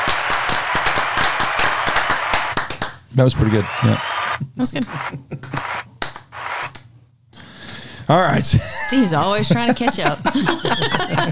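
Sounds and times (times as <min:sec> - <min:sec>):
applause: 0:00.0 - 0:06.8
laughter: 0:01.2 - 0:11.2
speech: 0:03.2 - 0:05.6, 0:08.1 - 0:11.2.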